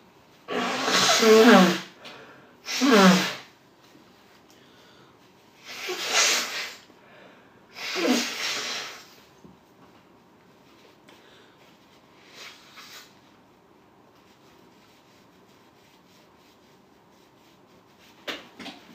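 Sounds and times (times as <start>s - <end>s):
person blowing nose: 0.5s - 2.0s, 2.6s - 3.5s, 5.6s - 6.9s, 7.7s - 9.2s, 12.2s - 13.2s.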